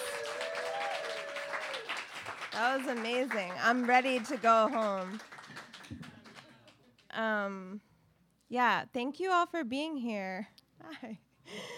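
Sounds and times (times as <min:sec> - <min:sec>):
audience applause: 0:00.0 - 0:06.8
speech: 0:02.6 - 0:05.3, 0:07.2 - 0:07.9, 0:08.5 - 0:11.7.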